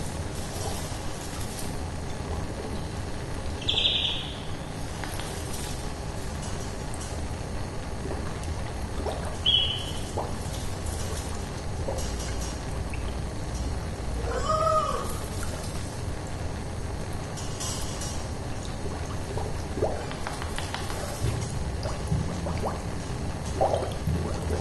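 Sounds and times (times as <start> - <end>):
laboratory ambient soundscape: 0.0 - 24.5.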